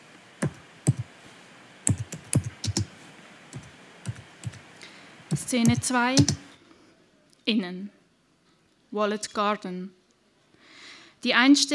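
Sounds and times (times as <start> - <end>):
computer keyboard typing: 1.9 - 2.9, 5.3 - 6.4
speech: 5.4 - 6.4, 7.5 - 8.0, 8.9 - 10.0, 11.2 - 11.7.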